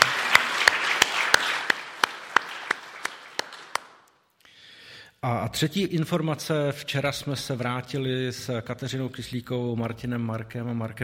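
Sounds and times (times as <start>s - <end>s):
small group applauding: 0.0s - 4.2s
speech: 5.2s - 11.0s.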